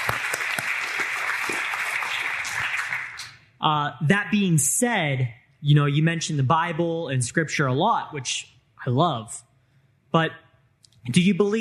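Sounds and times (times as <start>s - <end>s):
audience applause: 0.0s - 3.4s
speech: 3.6s - 9.5s, 10.1s - 10.4s, 11.0s - 11.6s.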